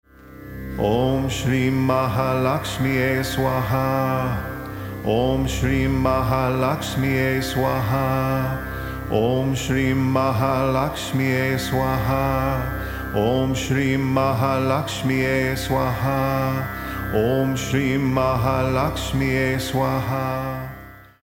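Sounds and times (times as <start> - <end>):
mantra chanting: 0.6 - 21.2.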